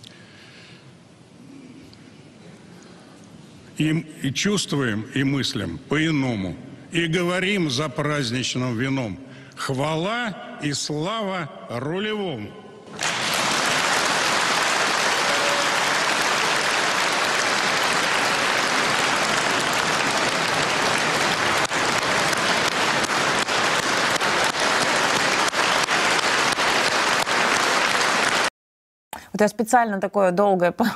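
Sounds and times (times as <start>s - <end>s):
speech: 3.8s - 13.0s, 29.4s - 30.9s
audience applauding in a hall: 12.9s - 28.5s
sharp individual claps: 12.9s - 28.5s.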